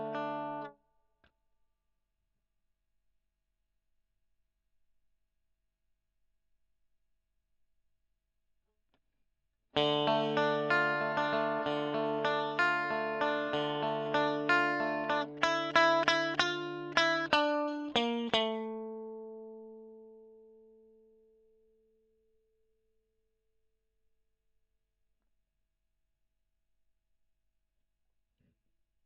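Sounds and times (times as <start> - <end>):
electric guitar recorded with a Gefell microphone: 0.0 - 0.7, 9.8 - 20.8.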